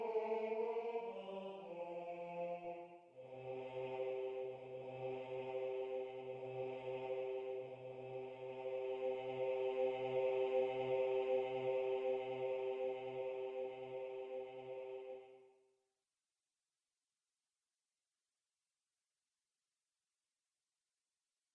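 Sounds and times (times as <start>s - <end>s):
tenor choir singing: 0.0s - 15.5s.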